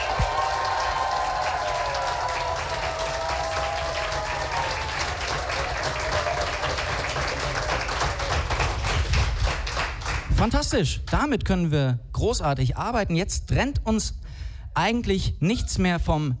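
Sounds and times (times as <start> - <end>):
audience applause at a live text-reading competition: 0.0 - 10.3
speech: 10.4 - 14.2, 14.8 - 16.3.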